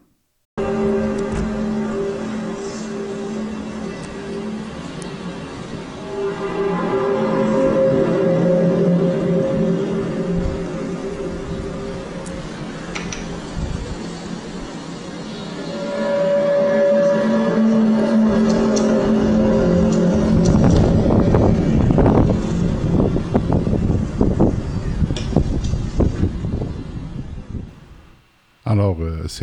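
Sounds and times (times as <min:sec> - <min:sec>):
mysterious trumpet-like sounds from the sky: 0:00.6 - 0:28.3.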